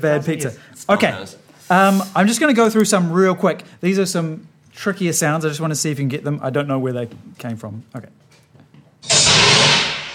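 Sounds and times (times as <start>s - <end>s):
speech: 0.0s - 8.2s
sci-fi blast door closing: 9.0s - 10.1s.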